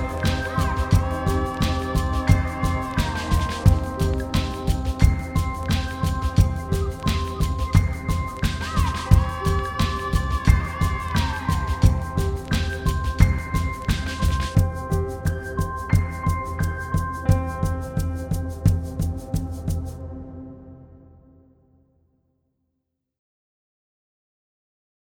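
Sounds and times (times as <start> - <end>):
thunderous drums ambience: 0.0 - 20.0.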